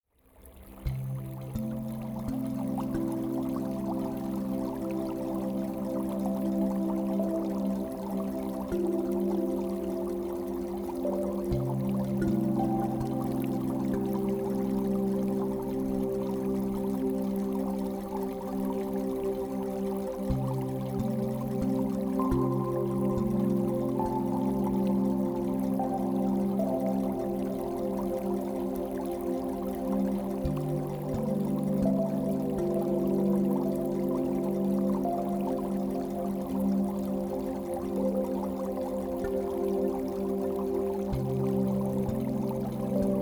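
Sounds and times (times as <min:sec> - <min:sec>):
binaural beats: 0:00.9 - 0:43.2.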